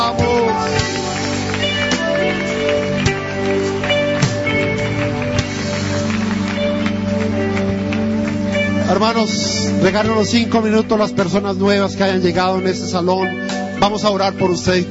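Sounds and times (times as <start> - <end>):
audience applause: 0.0 - 10.0
speech: 9.0 - 14.8.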